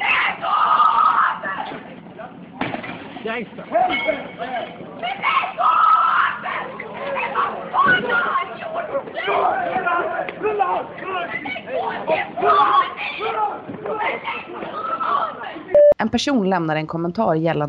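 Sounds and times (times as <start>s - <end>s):
several people screaming and shouting during a street attack in Trollhättan, Sweden: 0.0s - 1.8s, 5.0s - 15.7s
speech: 3.2s - 5.7s, 16.0s - 17.6s.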